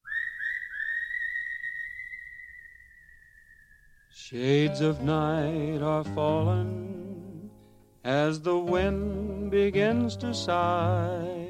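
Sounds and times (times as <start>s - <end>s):
whistling at the opening of a song: 0.0s - 4.3s
speech: 4.2s - 7.0s, 8.0s - 11.4s.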